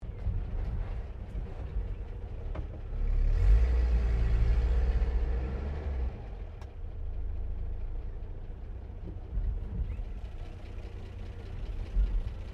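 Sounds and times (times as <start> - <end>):
classic Australian Holden FJ car turning slowly: 0.0 - 12.5.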